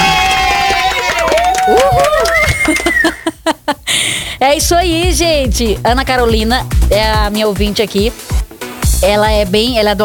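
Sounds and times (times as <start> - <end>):
applause: 0.0 - 3.2
laughter: 1.2 - 3.8
speech: 4.4 - 8.3, 9.0 - 10.0.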